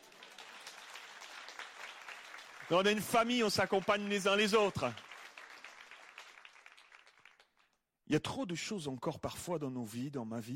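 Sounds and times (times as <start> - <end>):
crowd clapping: 0.0 - 7.8
speech: 2.7 - 5.0, 8.1 - 10.5.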